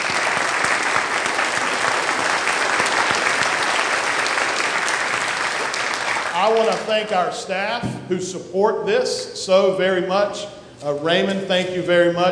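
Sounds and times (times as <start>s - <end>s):
audience round of applause: 0.0s - 7.2s
speech: 6.4s - 12.3s.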